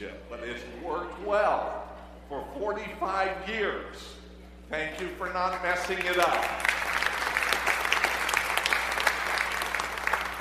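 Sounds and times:
speech: 0.0 - 6.8
audience applause: 6.0 - 10.3.

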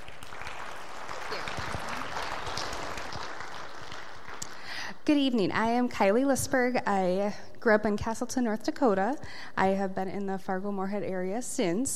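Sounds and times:
audience applause: 0.0 - 4.6
speech: 5.1 - 11.9.

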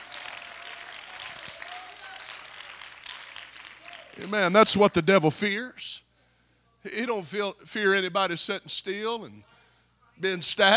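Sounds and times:
audience clapping: 0.0 - 4.8
speech: 4.2 - 6.0, 6.8 - 9.5, 10.2 - 10.7.

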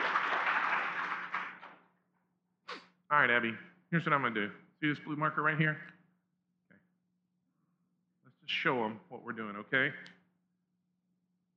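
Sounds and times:
audience clapping and cheering for a volunteer helper: 0.0 - 1.8
speech: 3.1 - 6.0, 8.5 - 10.2.

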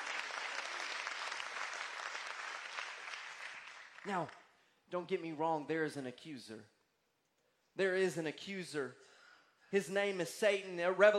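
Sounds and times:
audience clapping hands: 0.0 - 4.5
speech: 4.0 - 6.8, 7.8 - 9.1, 9.7 - 11.1.

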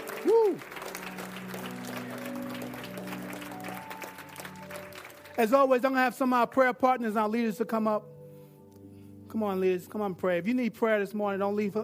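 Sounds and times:
audience hand clapping: 0.0 - 6.0
speech: 5.4 - 8.1, 9.4 - 11.8.

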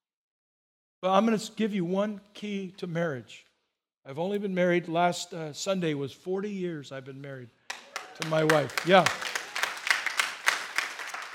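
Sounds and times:
speech: 1.0 - 7.6, 8.2 - 9.3
crowd clapping: 7.7 - 11.3.

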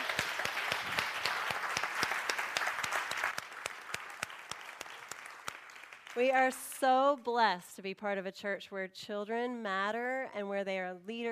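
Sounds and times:
audience applause: 0.0 - 6.7
speech: 6.2 - 11.2.

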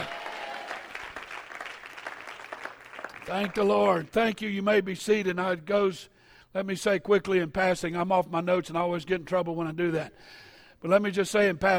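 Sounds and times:
faint cheering voices: 0.0 - 3.6
audience clapping: 0.0 - 4.1
speech: 3.3 - 11.7.

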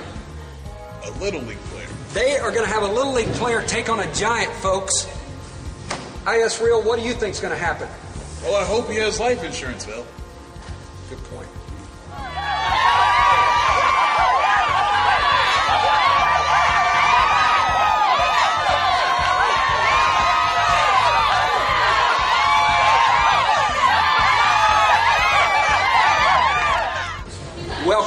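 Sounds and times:
speech: 1.0 - 5.2, 6.3 - 10.2
high whoops: 12.1 - 27.3
large crowd cheering and shouting excitedly: 12.2 - 27.3.

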